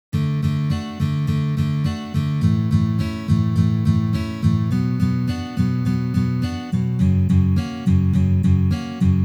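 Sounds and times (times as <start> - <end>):
guitar strumming: 0.2 - 9.2.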